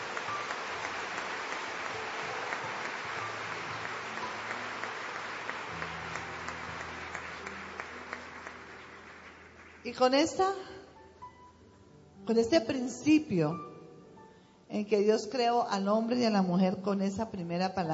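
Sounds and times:
audience applauding: 0.0 - 9.9
speech: 9.9 - 10.7, 12.3 - 13.7, 14.8 - 17.9.

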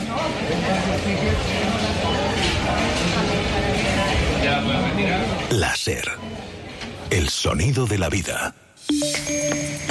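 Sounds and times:
busy indoor food market ambience at Mercado de la Concepción in Barcelona: 0.0 - 9.8
speech: 4.4 - 6.4, 7.1 - 9.8.

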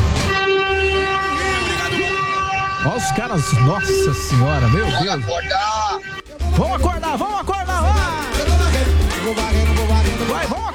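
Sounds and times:
train horn honking in a tunnel: 0.0 - 6.4
speech: 2.8 - 8.2, 9.2 - 10.5.

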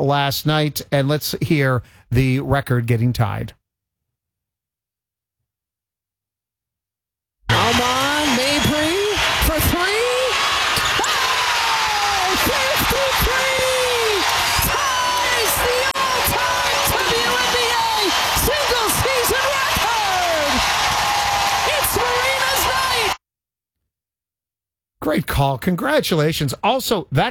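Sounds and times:
speech: 0.0 - 3.6, 25.0 - 27.2
arena crowd cheering: 7.5 - 23.2.

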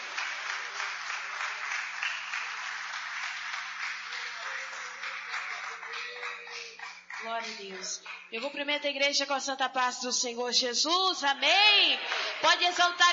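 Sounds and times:
audience applause: 0.0 - 8.3
speech: 7.2 - 13.1.

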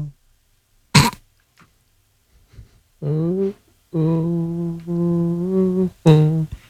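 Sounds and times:
man grunting and clearing throat: 1.0 - 1.2
man moaning on toilet: 3.0 - 6.6.

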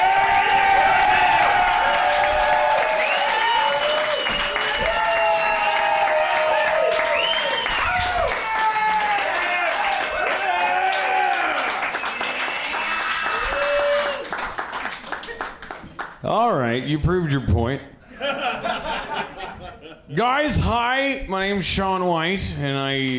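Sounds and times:
comedy show audience shouts and whoops: 0.0 - 14.3
audience clapping for a comedian at a comedy show: 0.0 - 16.3
speech: 16.8 - 18.9, 20.1 - 23.1
laughter: 18.1 - 20.1.

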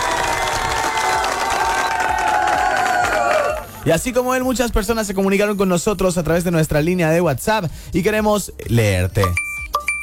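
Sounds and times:
crowd applauding: 0.0 - 4.0
speech: 3.9 - 9.4.

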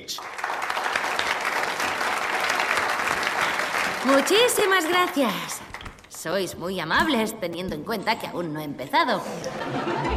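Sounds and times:
audience applause: 0.0 - 5.9
speech: 4.0 - 10.1
laughter: 9.2 - 10.1.

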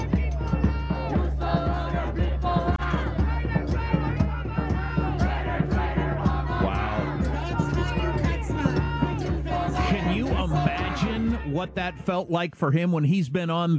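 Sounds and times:
protest crowd chanting and yelling: 0.0 - 13.7
speech: 11.6 - 13.7.

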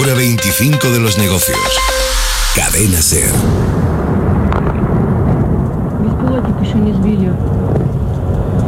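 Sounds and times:
speech: 0.1 - 4.0
continuous deep rumble of war: 0.3 - 8.6
missile explosions: 1.7 - 8.6.

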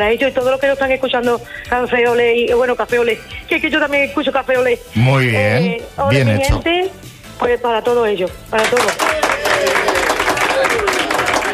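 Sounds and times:
speech: 0.0 - 9.9
applause: 8.6 - 11.5.

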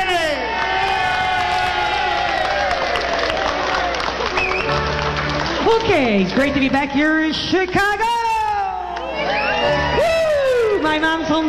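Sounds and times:
audience shouts and whoops: 0.0 - 4.8, 8.1 - 11.0
audience clapping to welcome a polka singer on stage in Chicago: 0.0 - 7.2
speech: 5.8 - 8.2, 10.8 - 11.4.

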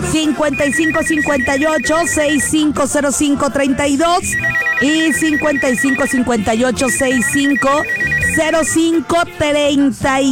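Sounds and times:
speech: 0.1 - 10.2
pulsing high beep: 0.5 - 2.7, 4.2 - 8.9
telephone ringtone on a radio call-in line: 0.5 - 2.8, 4.2 - 8.9.

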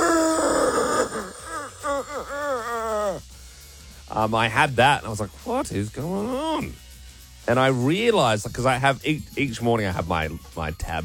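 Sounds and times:
voice imitating an overworked laptop fan: 0.0 - 3.2, 6.1 - 6.8
speech: 4.2 - 6.8, 7.4 - 11.0.

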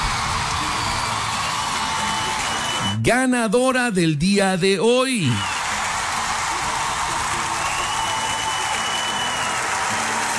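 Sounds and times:
audience applause: 0.0 - 3.0, 5.1 - 10.3
speech: 3.0 - 5.6.

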